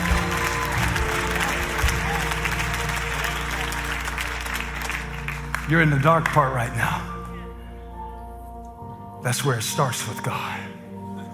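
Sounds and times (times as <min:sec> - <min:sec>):
clapping: 0:00.0 - 0:06.6
speech: 0:05.7 - 0:07.1, 0:09.2 - 0:10.8.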